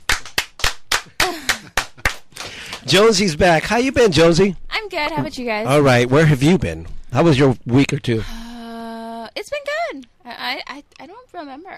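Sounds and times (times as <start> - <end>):
hands clapping: 0.0 - 3.0
speech: 2.8 - 8.4, 9.4 - 11.7.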